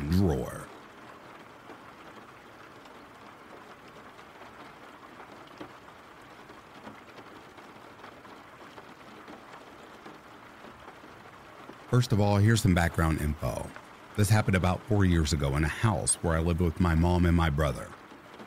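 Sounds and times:
rain falling: 0.0s - 18.4s
speech: 0.2s - 0.6s, 11.9s - 18.0s.

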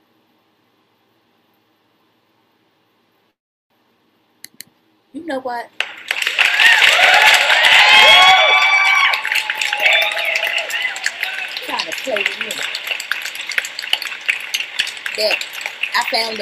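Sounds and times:
speech: 5.2s - 5.9s, 12.0s - 12.7s, 15.2s - 16.4s
applause: 5.8s - 16.4s.

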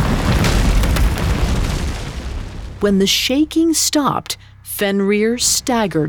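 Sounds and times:
heavy boulder smashing against rock: 0.0s - 2.8s
speech: 2.8s - 6.0s.

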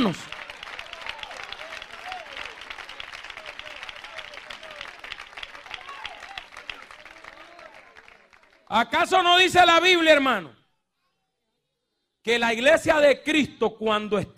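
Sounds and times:
speech: 0.0s - 0.3s, 8.7s - 10.6s, 12.2s - 14.3s
church congregation applauding: 0.0s - 9.5s.

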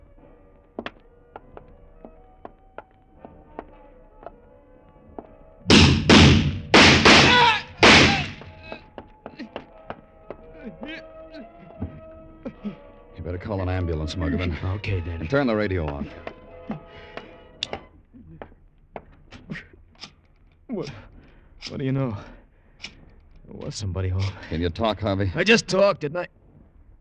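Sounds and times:
door being kicked open: 5.7s - 8.5s
laughter: 10.3s - 12.9s, 14.0s - 17.0s
speech: 14.1s - 16.8s, 21.8s - 22.4s, 23.7s - 26.4s.

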